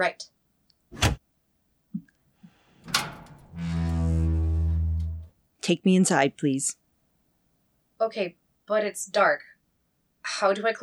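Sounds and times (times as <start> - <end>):
speech: 0.0 - 1.1, 5.7 - 6.8, 8.0 - 9.5, 10.2 - 10.8
mechanical clunk and latch thud of an electronic door: 1.0 - 1.2, 2.8 - 4.4.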